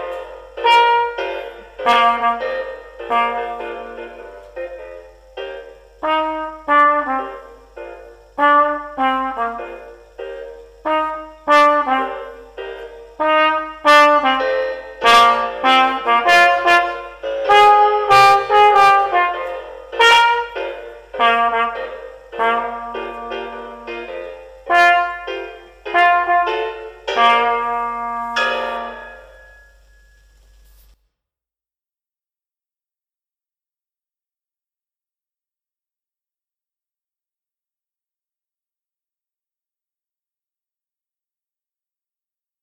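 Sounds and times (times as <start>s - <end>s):
trumpet playing a grade one piece: 0.0s - 4.7s, 6.0s - 30.4s.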